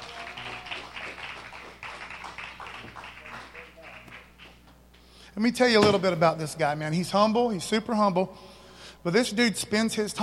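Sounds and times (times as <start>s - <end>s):
audience applause: 0.0s - 4.6s
speech: 5.4s - 10.2s.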